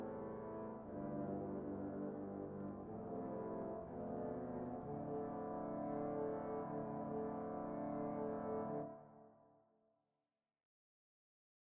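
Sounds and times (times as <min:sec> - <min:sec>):
trombone: 0:00.0 - 0:09.0.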